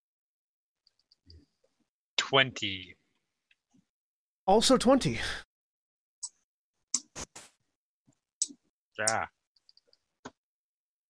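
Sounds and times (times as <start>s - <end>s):
speech: 2.3s - 3.0s, 4.5s - 5.4s, 9.0s - 9.4s
computer mouse clicking: 8.4s - 10.4s.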